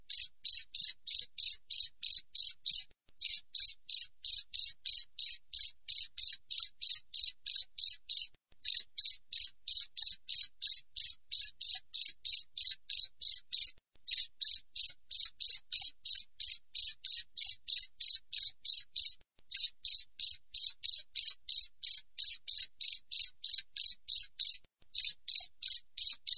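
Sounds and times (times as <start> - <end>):
cricket chirping: 0.1 - 26.3.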